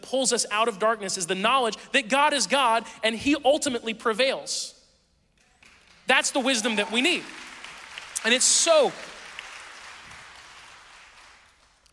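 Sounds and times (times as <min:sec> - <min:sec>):
speech: 0:00.1 - 0:04.8, 0:06.1 - 0:07.5, 0:08.2 - 0:09.2
audience applause: 0:05.6 - 0:11.9.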